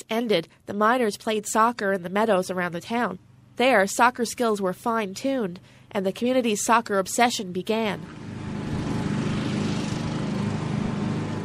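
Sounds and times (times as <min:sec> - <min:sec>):
speech: 0:00.1 - 0:08.3
lawn mower trimming grass on Centennial Field in St. Lawrence: 0:08.0 - 0:11.4.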